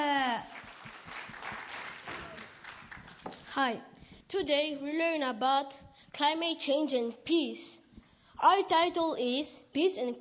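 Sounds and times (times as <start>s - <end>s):
audience applause: 0.5s - 3.4s
speech: 3.6s - 7.8s, 8.4s - 10.1s.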